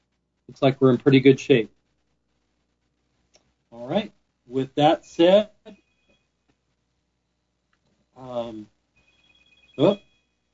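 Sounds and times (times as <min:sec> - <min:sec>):
speech: 0:00.5 - 0:01.8, 0:03.9 - 0:05.8, 0:08.2 - 0:08.7, 0:09.8 - 0:10.0
mobile phone ringing during a meeting: 0:09.0 - 0:10.4.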